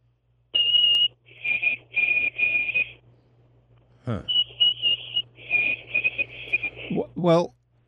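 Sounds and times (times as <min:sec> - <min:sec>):
whistled imitation of white-throated sparrow song: 0:00.6 - 0:03.0, 0:04.2 - 0:06.9
speech: 0:04.1 - 0:04.4, 0:07.2 - 0:07.6.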